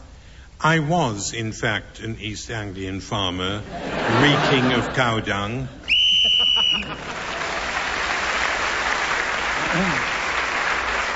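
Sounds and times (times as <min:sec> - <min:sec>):
speech: 0:00.6 - 0:05.8
laughter: 0:03.7 - 0:07.4
game show whistle blown: 0:05.9 - 0:07.0
audience applause: 0:06.6 - 0:11.1.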